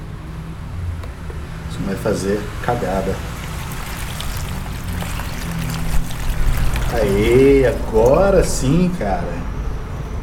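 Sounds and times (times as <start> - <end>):
speech: 1.8 - 3.4, 6.9 - 9.5
water pouring steadily from a large bucket: 2.9 - 9.0.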